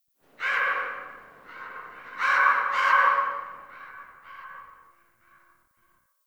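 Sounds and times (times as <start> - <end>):
distant critters in tree, scared: 0.3 - 4.5.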